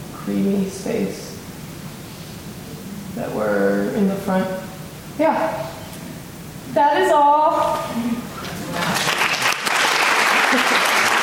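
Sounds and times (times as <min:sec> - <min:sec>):
speech: 0:00.3 - 0:01.4, 0:03.2 - 0:04.6, 0:05.2 - 0:05.7, 0:06.8 - 0:08.1
audience clapping: 0:08.4 - 0:11.2.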